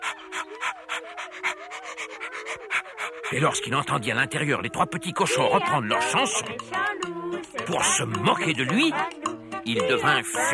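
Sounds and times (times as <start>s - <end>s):
wolf panting, catching its breath after running: 0.0s - 4.5s
speech: 3.3s - 10.5s.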